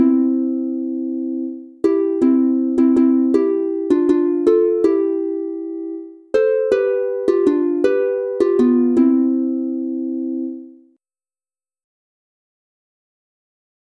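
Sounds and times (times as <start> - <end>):
two-voice harp playing in C major: 0.0 - 10.8.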